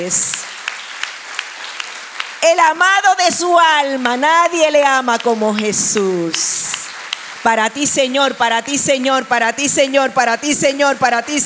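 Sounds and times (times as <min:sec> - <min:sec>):
speech: 0:00.0 - 0:00.4, 0:02.4 - 0:06.6, 0:07.4 - 0:11.4
audience applause: 0:00.0 - 0:08.6.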